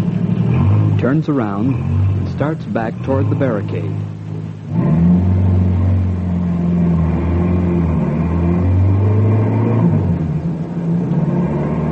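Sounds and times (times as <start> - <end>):
car driving and approaching: 0.0 - 11.9
speech: 1.0 - 5.0.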